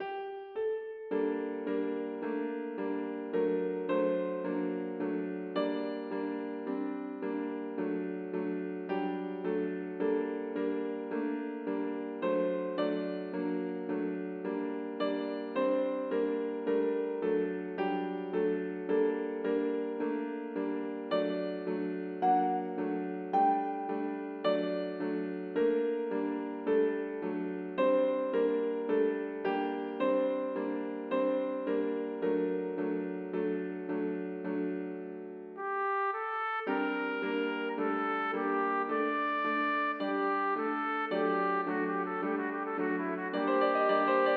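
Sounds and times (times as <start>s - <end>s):
aria for trumpet and piano: 0.0s - 44.3s.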